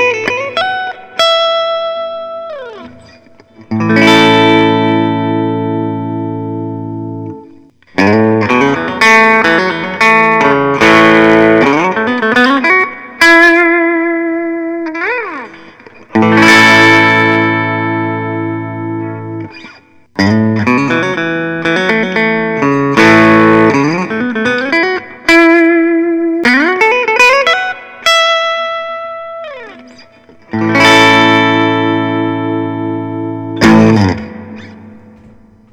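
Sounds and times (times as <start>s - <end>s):
Gustavsson Bluesmaster Custom 5 electric guitar: 0.0s - 35.7s.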